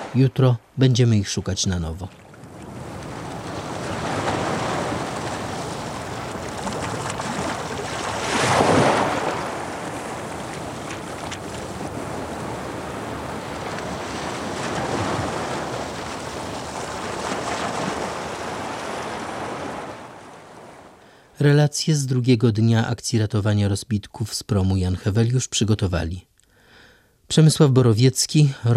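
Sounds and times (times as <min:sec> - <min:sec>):
stormy sea waves on the Baltic: 0:00.0 - 0:00.8, 0:02.1 - 0:21.3
storm wind over the Baltic: 0:00.0 - 0:28.7
speech: 0:00.1 - 0:02.2, 0:21.4 - 0:26.3, 0:27.3 - 0:28.7.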